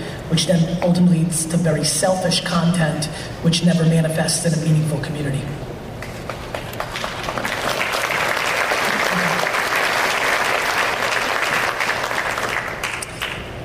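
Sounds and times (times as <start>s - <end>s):
speech: 0.3s - 5.6s
audience applause: 6.3s - 13.4s.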